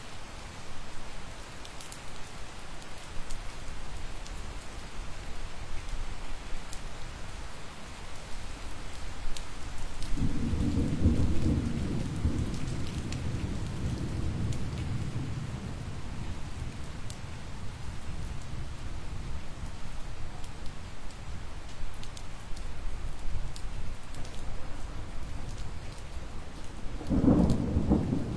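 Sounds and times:
summer thunderstorm rain pattering: 0.0 - 28.3
thunder rumbling in a summer thunderstorm: 10.2 - 18.0, 27.0 - 28.3.

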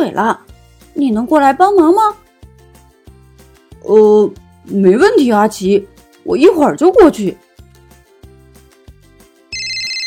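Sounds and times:
speech: 0.0 - 2.2, 3.8 - 7.4
telephone ringing: 9.5 - 10.0.

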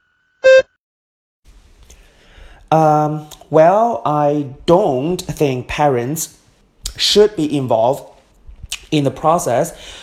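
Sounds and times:
beep signalling start of speaking: 0.4 - 0.8
speech: 2.7 - 6.4, 7.0 - 8.1, 8.9 - 10.0.

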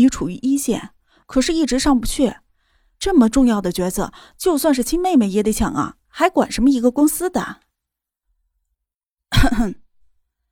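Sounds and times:
speech: 0.0 - 2.4, 3.0 - 7.6, 9.3 - 9.8
woman giving a throat-clearing cough: 9.3 - 9.9.

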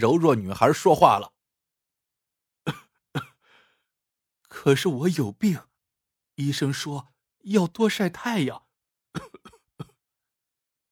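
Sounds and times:
speech: 0.0 - 1.3, 2.6 - 3.3, 4.6 - 5.7, 6.4 - 8.6
girl coughing: 2.7 - 3.4, 9.2 - 10.0.

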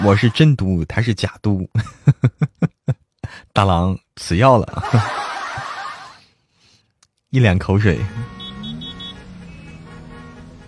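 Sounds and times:
laughter: 0.0 - 0.5, 1.8 - 3.4, 4.6 - 6.2
speech: 0.0 - 2.7, 3.3 - 5.3, 7.3 - 8.4
steady low rumble of traffic: 7.1 - 10.6
car horn toots in a traffic jam: 7.8 - 10.6.

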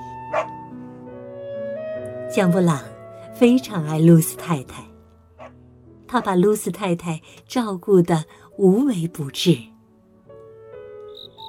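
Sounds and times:
small dog yipping: 0.4 - 0.6
speech: 2.3 - 4.9, 6.1 - 9.7.

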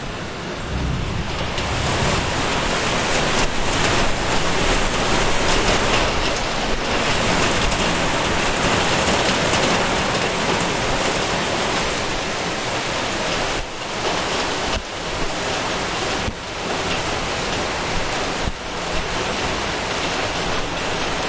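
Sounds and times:
rain falling in a dense steady hiss: 0.0 - 21.2
low rumble: 0.2 - 5.0.

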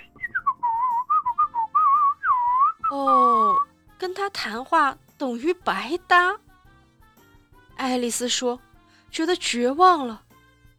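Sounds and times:
person whistling a tune: 0.0 - 3.7
speech: 2.9 - 3.3, 4.1 - 6.4, 7.8 - 10.2.

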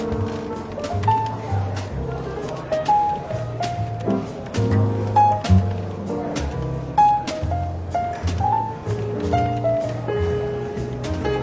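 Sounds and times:
clicks and taps: 0.0 - 10.1
soft relaxed jazz with walking bass and gentle chords: 0.0 - 11.4
murmured talk in a London bookshop café: 0.2 - 9.0.

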